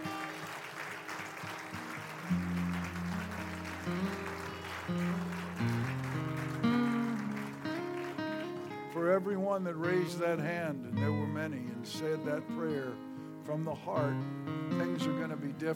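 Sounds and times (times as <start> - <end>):
audience hand clapping in praise: 0.0 - 9.0
speech: 9.2 - 15.7.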